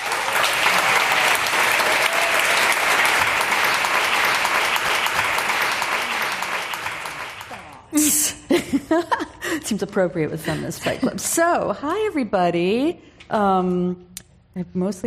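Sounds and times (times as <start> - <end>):
audience applause: 0.0 - 7.9
speech: 9.7 - 15.0.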